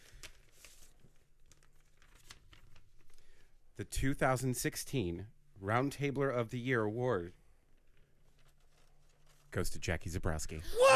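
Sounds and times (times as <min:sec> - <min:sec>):
envelope paper crinkling and tearing at an awards announcement: 0:00.0 - 0:03.2, 0:07.9 - 0:09.6
speech: 0:03.8 - 0:07.4, 0:09.5 - 0:10.9.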